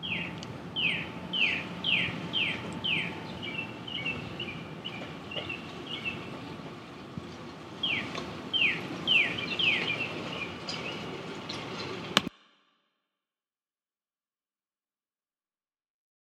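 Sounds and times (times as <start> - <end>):
outdoor morning ambience: 0.0 - 12.6.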